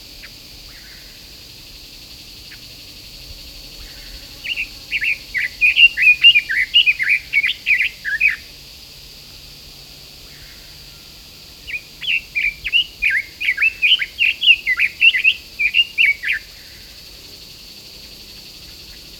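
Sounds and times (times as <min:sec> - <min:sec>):
red-billed leiothrix singing: 0:04.4 - 0:08.4, 0:11.7 - 0:16.5.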